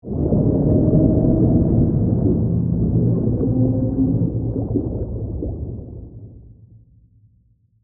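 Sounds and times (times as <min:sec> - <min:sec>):
horror sea creature moan, whale song: 0:00.1 - 0:05.0.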